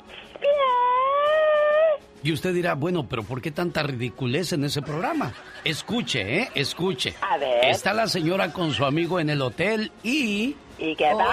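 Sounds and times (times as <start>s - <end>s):
person imitating a cat: 0.4s - 2.0s
speech: 2.2s - 11.3s
laughter: 4.8s - 7.2s, 7.9s - 9.0s.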